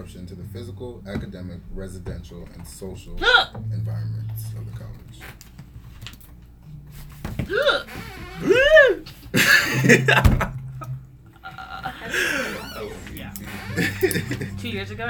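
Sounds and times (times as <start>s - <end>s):
speech: 0.0s - 5.6s, 7.5s - 10.6s, 13.8s - 15.0s
person hiccuping: 3.1s - 3.6s, 7.4s - 10.2s
laughter: 8.4s - 15.0s.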